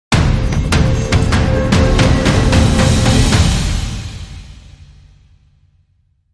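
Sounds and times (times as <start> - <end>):
dramatic sting: 0.1 - 5.6.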